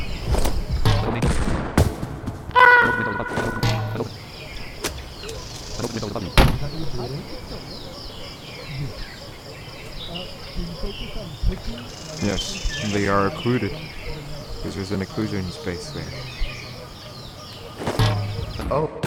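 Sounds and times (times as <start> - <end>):
dense chirping insect-like background: 0.0 - 1.7, 2.5 - 19.0
video game gunshots: 0.8 - 4.0, 17.8 - 19.0
speech: 12.9 - 13.9, 14.6 - 16.4, 18.7 - 19.0.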